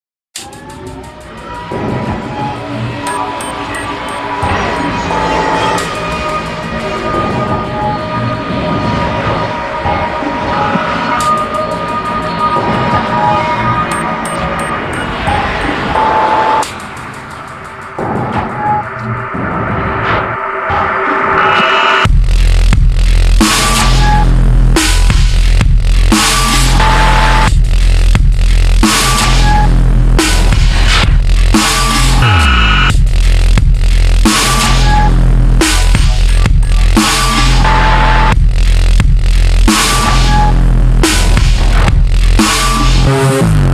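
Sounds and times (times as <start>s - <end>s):
demon house music: 0.4s - 43.7s.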